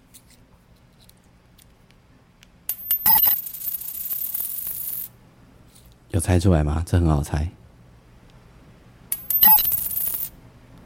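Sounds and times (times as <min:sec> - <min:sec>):
coins rattling inside a tortoise shell: 0:02.7 - 0:05.1, 0:09.1 - 0:10.4
speech: 0:06.1 - 0:07.6.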